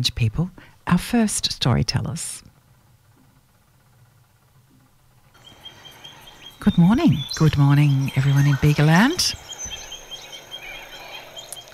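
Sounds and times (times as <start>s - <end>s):
speech: 0.0s - 2.5s, 6.6s - 9.4s
soft hiss of outdoor ambience: 0.4s - 11.7s
birds chirping by the river: 5.4s - 11.7s.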